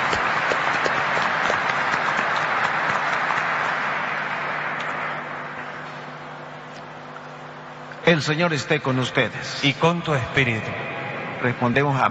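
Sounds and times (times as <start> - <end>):
audience applauding: 0.0 - 5.8
speech: 8.1 - 12.1.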